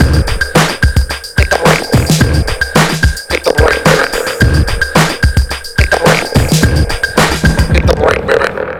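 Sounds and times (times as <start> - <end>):
breakbeat drums: 0.0 - 8.7.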